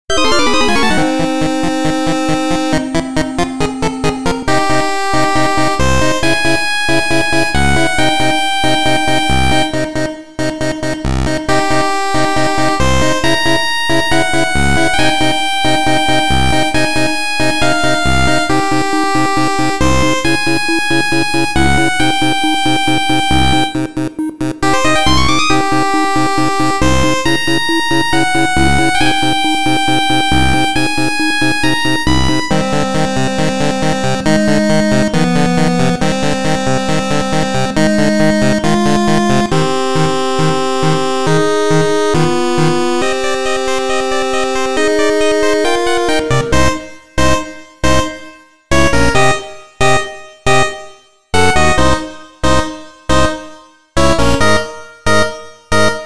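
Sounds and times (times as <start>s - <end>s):
8-bit music: 0.1s - 56.0s.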